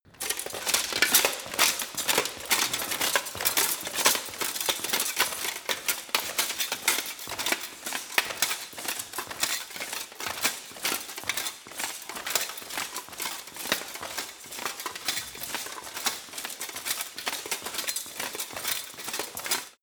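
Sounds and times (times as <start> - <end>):
fast footsteps: 0.0 - 19.8.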